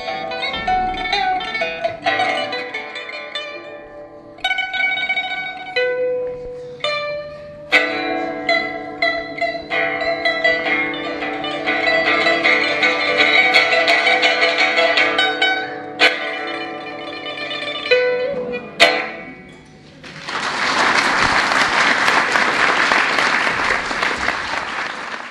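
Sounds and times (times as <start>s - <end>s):
pipa playing a flowing classical melody: 0.0s - 20.1s
audience applause: 20.0s - 25.3s.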